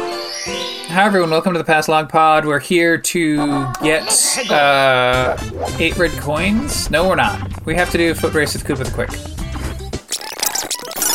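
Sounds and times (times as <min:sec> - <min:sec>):
speech: 0:00.9 - 0:09.4
low droning tone: 0:05.1 - 0:09.2
Nintendo 64 controller stick squeaking as it is wiggled: 0:10.0 - 0:11.1.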